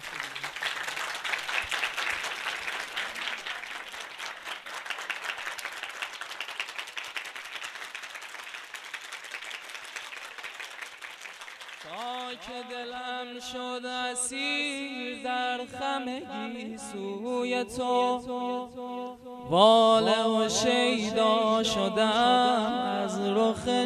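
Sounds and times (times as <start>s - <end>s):
audience clapping along during a Persian hymn gathering: 0.0s - 12.7s
speech: 12.4s - 18.8s, 19.5s - 23.8s.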